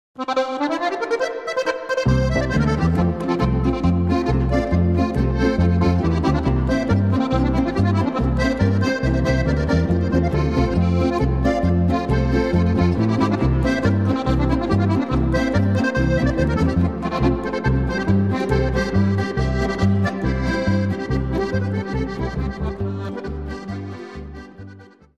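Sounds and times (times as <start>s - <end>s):
polka on Steirische Harmonika: 0.2s - 25.1s.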